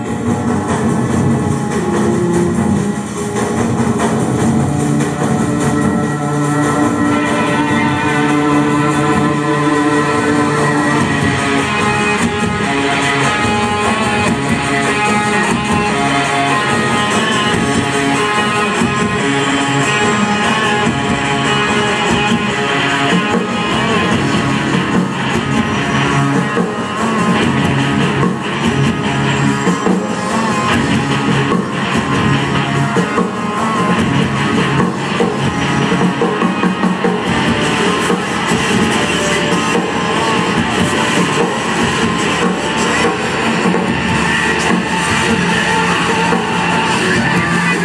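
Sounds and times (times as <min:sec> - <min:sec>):
live band soundcheck: 0:00.1 - 0:47.8.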